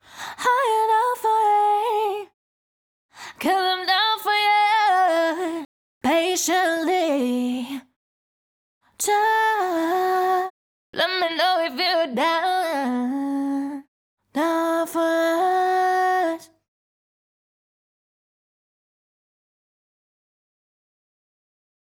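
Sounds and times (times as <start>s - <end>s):
clean a cappella pop vocal adlibs in F sharp minor: 0.0s - 2.4s, 3.2s - 7.9s, 9.0s - 16.6s.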